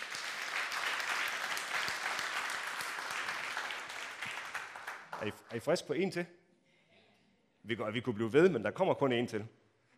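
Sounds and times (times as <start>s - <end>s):
crowd clapping: 0.0s - 5.9s
speech: 5.2s - 6.4s, 7.6s - 9.6s.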